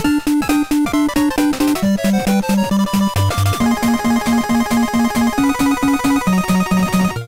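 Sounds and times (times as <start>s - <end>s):
end credits underwater theme music: 0.0s - 7.2s.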